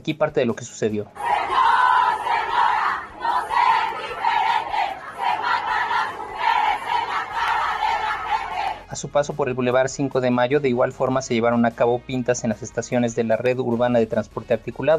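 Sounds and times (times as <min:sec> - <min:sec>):
speech: 0:00.0 - 0:01.6, 0:09.0 - 0:14.9
protest crowd chanting slogans: 0:01.2 - 0:08.9.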